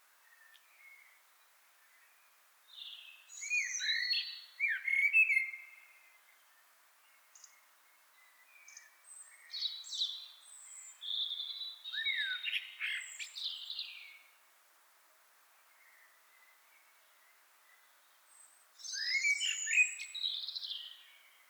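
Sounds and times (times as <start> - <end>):
common blackbird Turdus merula singing fluted warbles and squeaky notes: 2.7 - 6.0, 8.3 - 14.2, 18.8 - 21.4.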